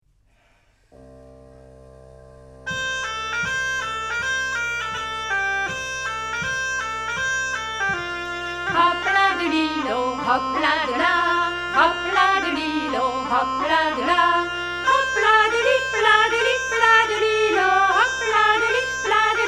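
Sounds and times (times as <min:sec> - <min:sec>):
schottische rhythm with voice and instruments in F: 0:01.1 - 0:19.4.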